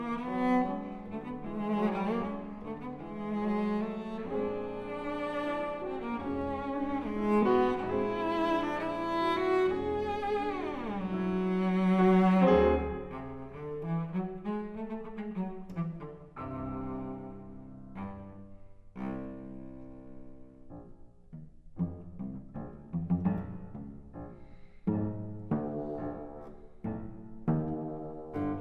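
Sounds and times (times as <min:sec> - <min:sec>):
cello and piano sonata: 0:00.0 - 0:28.5.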